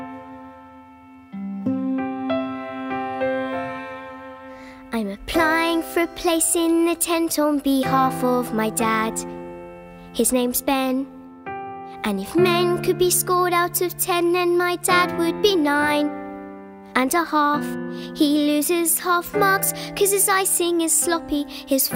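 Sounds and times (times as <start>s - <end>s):
person singing: 1.4s - 9.3s, 11.9s - 16.1s, 17.0s - 21.9s.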